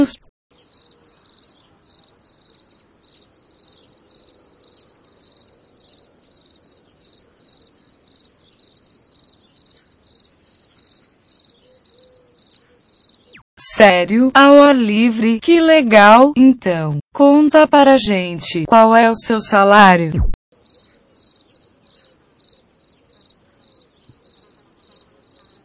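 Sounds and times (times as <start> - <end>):
speech: 0.0 - 0.2, 13.8 - 20.4
cicada chirping: 0.6 - 13.4, 20.6 - 25.6.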